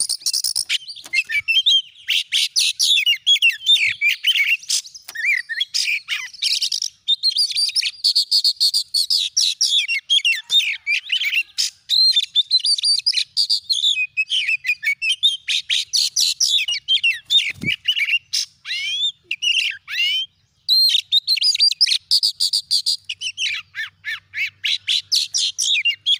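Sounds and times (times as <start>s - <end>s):
Oriental magpie-robin song with whistles, chirps and buzzy trills: 0.0s - 26.1s.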